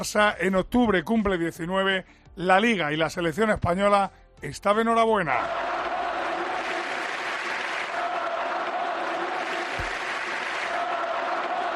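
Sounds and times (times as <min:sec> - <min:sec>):
speech: 0:00.0 - 0:05.7
football crowd chanting a player's name: 0:05.4 - 0:11.7.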